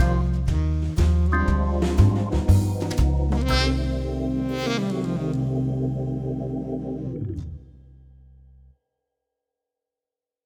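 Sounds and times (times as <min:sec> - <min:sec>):
saxophone: 0:00.0 - 0:02.6, 0:03.2 - 0:07.6.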